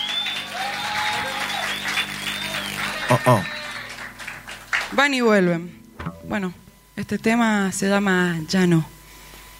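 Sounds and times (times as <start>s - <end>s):
audience applause: 0.0s - 5.0s
speech: 3.1s - 3.6s, 4.9s - 9.0s.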